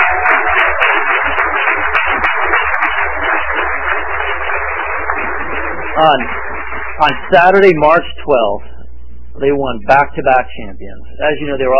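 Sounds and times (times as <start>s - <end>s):
audience applause: 0.0s - 8.0s
speech: 6.0s - 6.4s, 7.0s - 8.7s, 9.4s - 11.7s.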